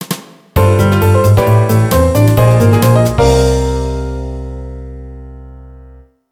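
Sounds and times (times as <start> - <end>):
jingle: 0.6 - 4.8.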